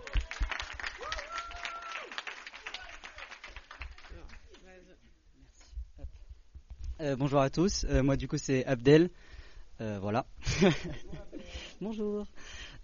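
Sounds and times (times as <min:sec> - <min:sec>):
audience applause: 0:00.0 - 0:04.5
scattered voices and cheering calls: 0:01.0 - 0:03.3
speech: 0:07.0 - 0:11.2, 0:11.8 - 0:12.6.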